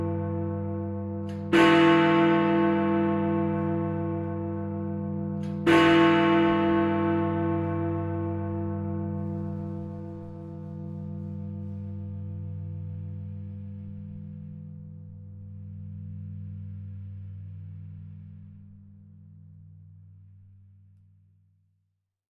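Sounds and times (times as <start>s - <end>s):
chimes of Big Ben: 0.0s - 11.6s.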